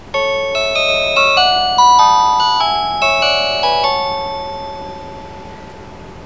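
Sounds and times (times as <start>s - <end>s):
chime: 0.0s - 6.0s.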